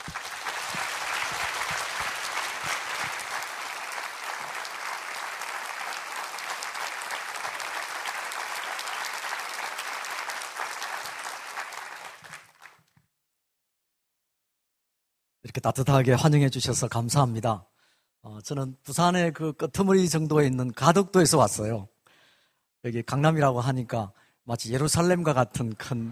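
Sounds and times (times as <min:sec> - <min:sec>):
audience applause: 0:00.0 - 0:12.9
speech: 0:15.6 - 0:17.7, 0:18.4 - 0:21.9, 0:22.8 - 0:26.0.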